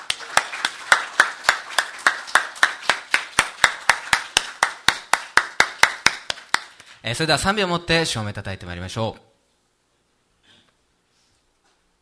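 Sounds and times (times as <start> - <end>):
audience clapping: 0.0 - 7.0
speech: 7.0 - 9.3.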